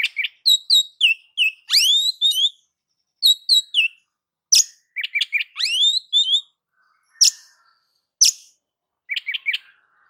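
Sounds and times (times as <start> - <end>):
oriental magpie-robin singing: 0.0 - 10.0.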